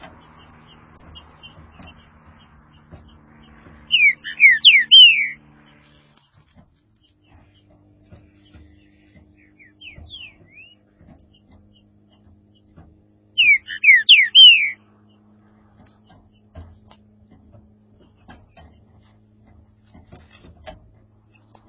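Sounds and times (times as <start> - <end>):
green-winged saltator song: 1.0 - 2.0, 3.1 - 5.4, 9.3 - 11.5, 13.3 - 14.8.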